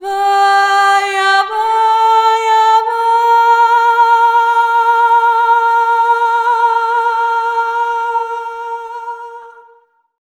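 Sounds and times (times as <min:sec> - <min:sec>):
Balkan-style traditional vocals: 0:00.0 - 0:10.1.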